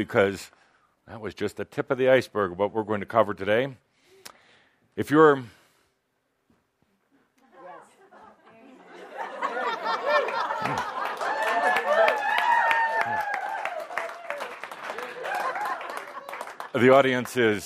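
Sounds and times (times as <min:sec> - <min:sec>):
speech: 0:00.0 - 0:03.8, 0:05.0 - 0:05.6, 0:16.8 - 0:17.6
laughter: 0:07.4 - 0:11.8, 0:15.1 - 0:16.7
audience clapping: 0:09.4 - 0:17.6.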